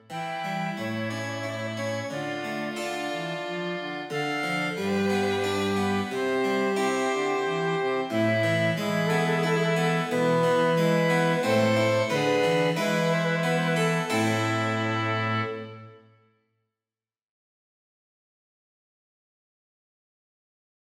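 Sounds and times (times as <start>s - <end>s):
cello: 0.0s - 16.0s
flute: 0.0s - 16.0s
violin: 0.0s - 16.1s
harpsichord: 0.2s - 15.9s.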